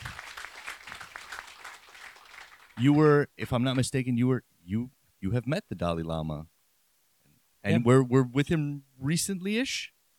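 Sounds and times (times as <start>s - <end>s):
applause: 0.0s - 3.2s
speech: 2.8s - 6.5s, 7.6s - 10.0s.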